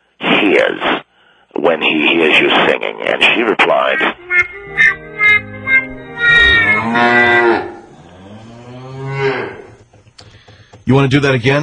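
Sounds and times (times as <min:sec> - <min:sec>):
speech: 0:01.8 - 0:05.5, 0:10.9 - 0:11.6
cow mooing sound effect: 0:06.0 - 0:09.8.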